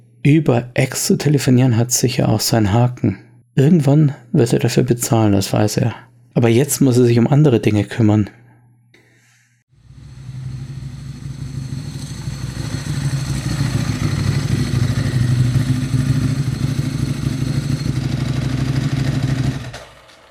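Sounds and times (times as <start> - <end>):
speech: 0.2 - 8.4
combustion motorcycle engine sputtering to a stop: 9.8 - 20.2.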